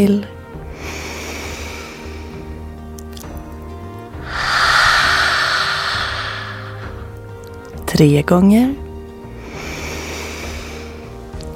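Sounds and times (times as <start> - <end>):
speech: 0.0 - 0.4, 8.0 - 8.8
forceful exhale with open mouth, tongue out: 4.3 - 7.1.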